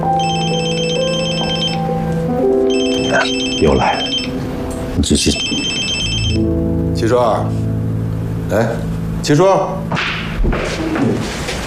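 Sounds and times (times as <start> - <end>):
mobile phone ringing with electronic ringtone: 0.1 - 1.9, 2.7 - 4.4, 5.2 - 6.6
speech: 3.2 - 4.1, 5.0 - 7.6, 8.5 - 11.5.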